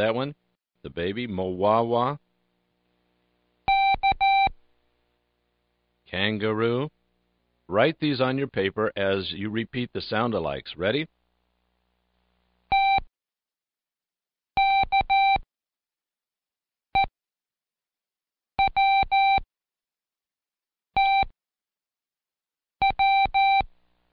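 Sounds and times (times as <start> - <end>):
speech: 0.0 - 2.2, 6.1 - 7.0, 7.7 - 11.2
Morse code letters beeped in a mid-pitched tone: 3.7 - 4.5, 14.6 - 15.4, 18.6 - 19.4, 21.0 - 21.3, 22.8 - 23.6.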